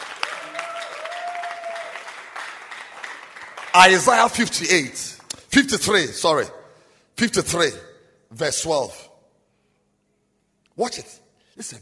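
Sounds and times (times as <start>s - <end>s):
audience applause at a church service: 0.0s - 4.4s
speech: 3.8s - 6.6s, 7.2s - 9.0s, 10.8s - 11.8s.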